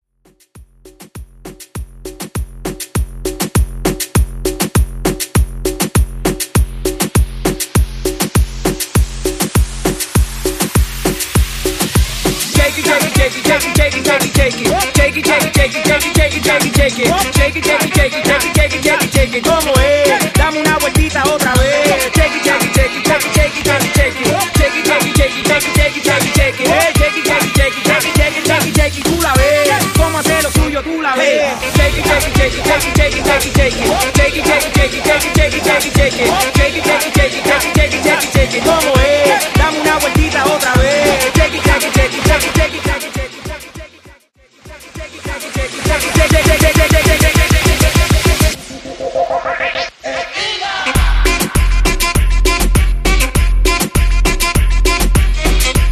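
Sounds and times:
moombahton music: 0.2 - 55.8.

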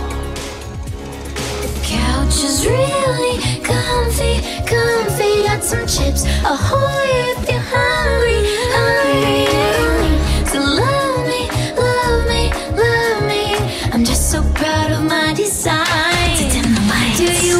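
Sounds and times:
Top 40 pop music at 118 bpm: 0.0 - 17.5.

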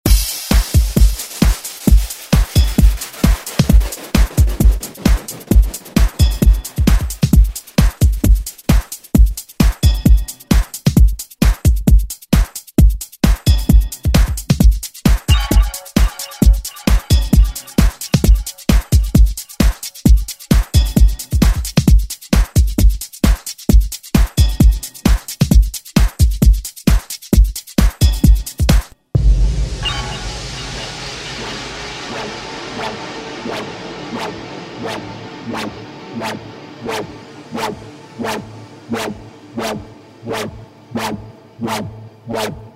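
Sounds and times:
90s drum beat: 0.0 - 31.2.

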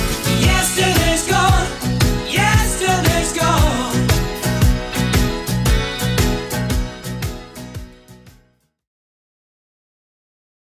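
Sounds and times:
70s Redrum drum machine beat: 0.0 - 8.2.

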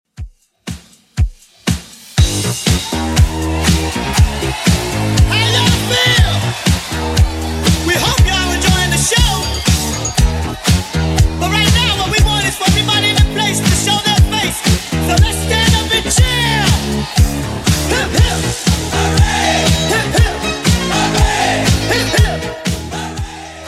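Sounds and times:
80s drum machine beat at 120 bpm: 0.1 - 23.6.

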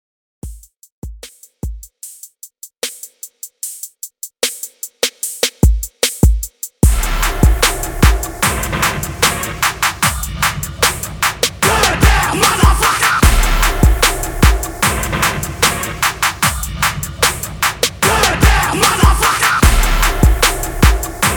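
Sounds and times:
trap remix beat: 0.4 - 21.3.

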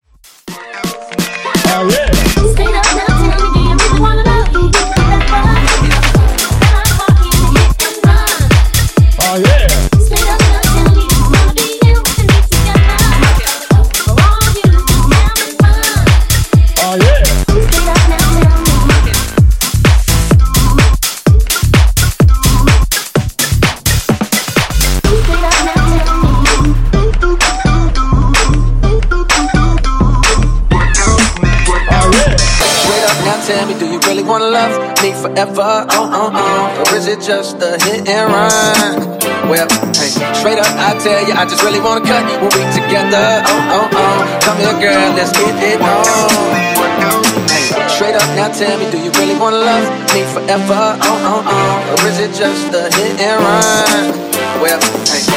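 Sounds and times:
music hooks: 0.2 - 55.3.

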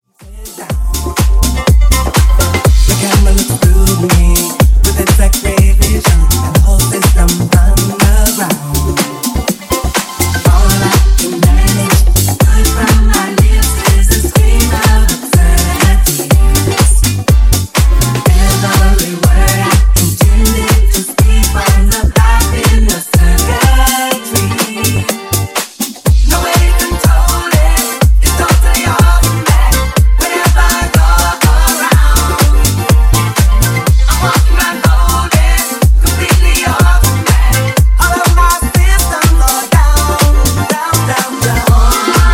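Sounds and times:
disco funk remix: 0.0 - 42.3.

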